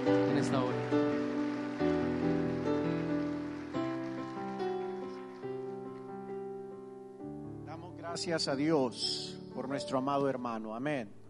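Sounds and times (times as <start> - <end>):
audience applauding loudly: 0.0 - 6.4
speech: 8.2 - 11.2.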